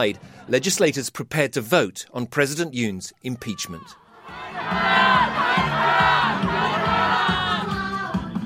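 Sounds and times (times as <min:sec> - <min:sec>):
speech: 0:00.0 - 0:05.8
huge crowd of protesters roaring and chanting outside parliament: 0:03.9 - 0:08.1.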